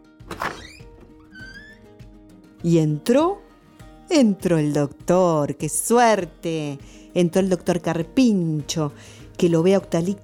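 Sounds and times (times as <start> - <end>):
door opening with thunk and creaky squeaking: 0.2 - 2.0
speech: 2.6 - 3.4, 4.1 - 10.2.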